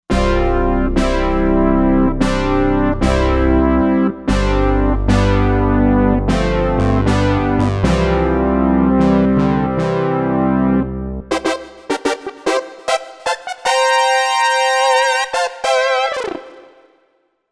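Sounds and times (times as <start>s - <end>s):
synth brass: 0.1s - 16.9s.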